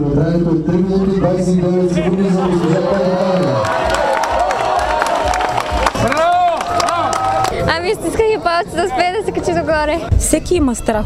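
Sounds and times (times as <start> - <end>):
speech: 0.0 - 3.9, 7.9 - 11.0
audience applause and cheering: 2.1 - 7.9.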